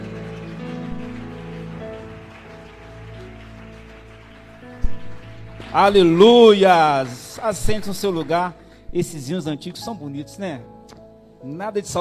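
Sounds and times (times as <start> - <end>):
audience applauding loudly: 0.0 - 8.9
speech: 5.6 - 10.7, 11.4 - 12.0.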